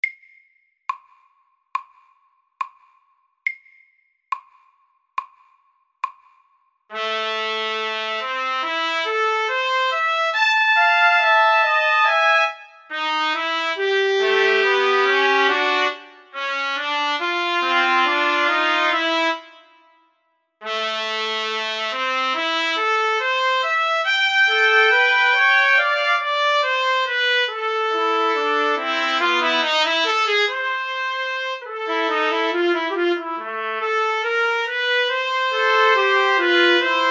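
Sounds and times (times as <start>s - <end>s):
duet in B minor: 6.9s - 19.8s, 20.6s - 37.0s.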